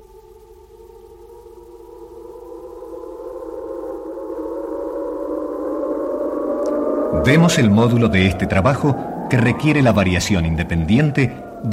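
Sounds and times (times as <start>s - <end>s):
electronic sine tones from an analog graphic score converter: 0.0s - 11.7s
speech: 7.2s - 11.7s.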